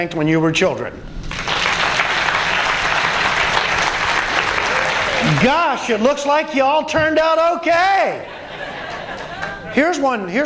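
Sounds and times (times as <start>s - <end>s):
speech: 0.0s - 1.2s, 5.2s - 8.4s, 9.8s - 10.4s
audience applause: 1.3s - 6.3s
laughter: 8.1s - 10.0s.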